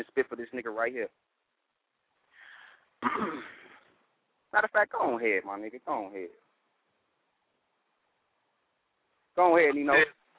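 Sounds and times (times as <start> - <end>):
speech: 0.0 - 1.3, 3.0 - 3.6, 4.5 - 6.4, 9.4 - 10.2
man clearing his throat: 3.0 - 3.8.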